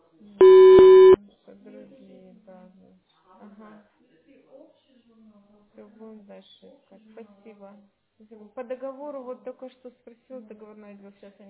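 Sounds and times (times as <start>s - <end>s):
voicemail beep tone: 0.4s - 1.2s
speech: 5.8s - 11.4s.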